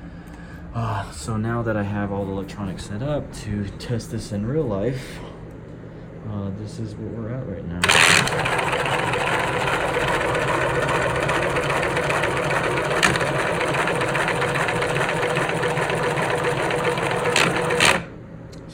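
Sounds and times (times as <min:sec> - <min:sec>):
speech: 0:00.8 - 0:05.3, 0:06.3 - 0:10.2
small electric motor whirring through plastic gears with crackle: 0:07.8 - 0:18.1.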